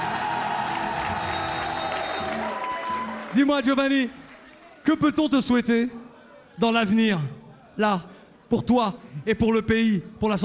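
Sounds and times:
audience clapping: 0.0 - 5.1
speech: 3.4 - 4.2, 4.8 - 6.0, 6.6 - 10.4.

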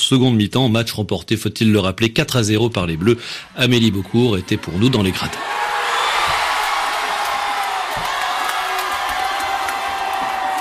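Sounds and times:
speech: 0.1 - 5.6
football supporters cheering: 3.6 - 10.5.

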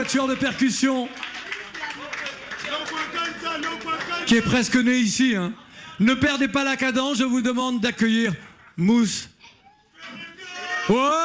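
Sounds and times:
speech: 0.0 - 1.6, 3.6 - 9.3, 10.9 - 11.2
audience applause: 0.0 - 5.1.

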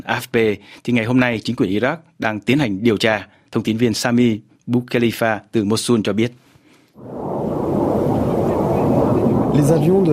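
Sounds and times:
speech: 0.0 - 6.4, 7.0 - 7.3, 9.6 - 10.1
coalition military aircraft roar over Mosul: 7.0 - 10.1.

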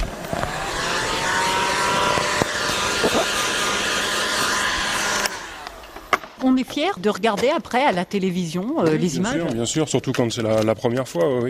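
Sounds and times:
heat gun blowing hot air to soften plastic: 0.0 - 6.4
speech: 6.6 - 11.4.

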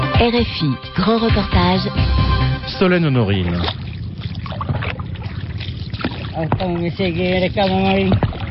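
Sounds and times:
speech: 0.2 - 3.9, 6.4 - 8.3
oars splashing as a small boat is rowed along a river: 2.9 - 8.4.

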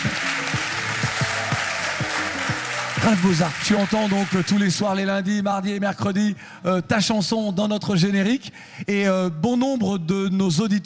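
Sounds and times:
applause: 0.0 - 5.0
speech: 3.0 - 10.8.

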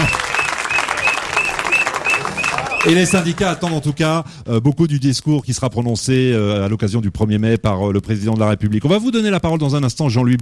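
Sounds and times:
audience applause: 0.0 - 4.1
speech: 2.8 - 10.4.

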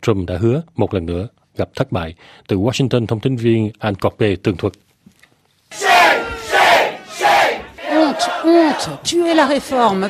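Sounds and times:
speech: 0.0 - 4.9, 8.2 - 10.0
protesters chanting slogans: 5.7 - 10.0.

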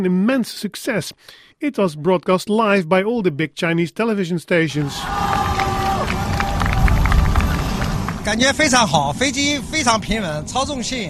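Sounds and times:
speech: 0.0 - 5.2, 8.2 - 11.0
hundreds of people cheering on the tarmac: 4.7 - 8.8.

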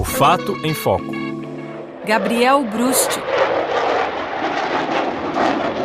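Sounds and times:
speech: 0.2 - 1.2, 2.1 - 3.5
Rafale fighter jet roaring: 1.6 - 5.8.

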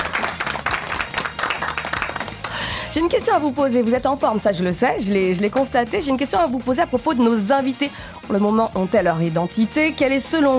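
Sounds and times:
audience applause on a French-language show: 0.0 - 2.7
speech: 2.9 - 10.5.

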